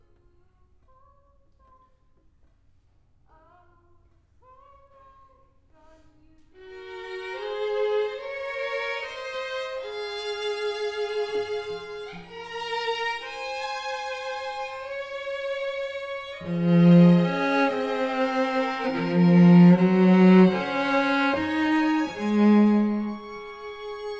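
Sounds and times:
cello: 6.6s - 24.1s.

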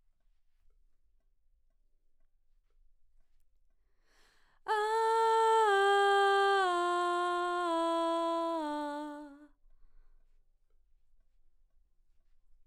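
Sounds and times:
background vocals: 4.7s - 9.5s.

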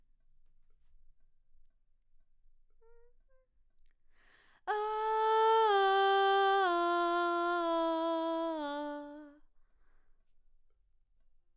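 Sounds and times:
background vocals: 4.7s - 9.4s.

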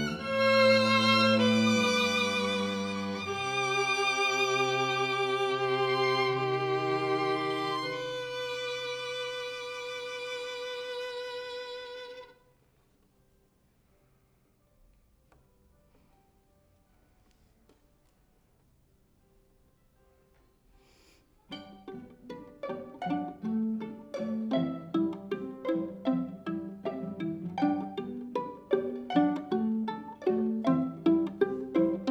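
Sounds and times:
violin: 0.0s - 12.5s, 21.5s - 32.0s.

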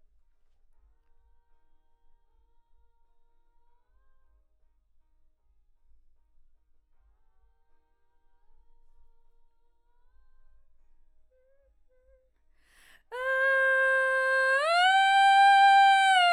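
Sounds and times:
vocal: 12.9s - 16.3s.

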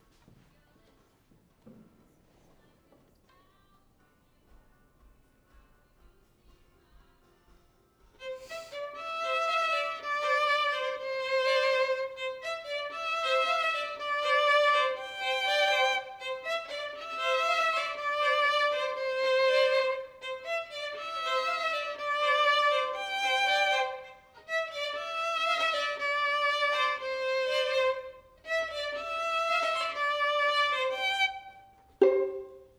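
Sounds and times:
violin: 8.1s - 32.7s.

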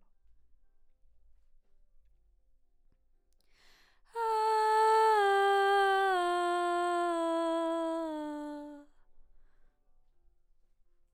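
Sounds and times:
background vocals: 4.2s - 8.8s.

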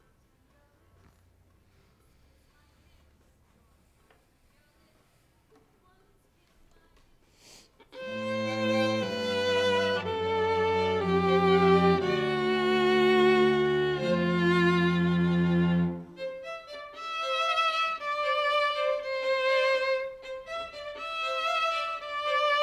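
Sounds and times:
violin: 7.9s - 22.6s.

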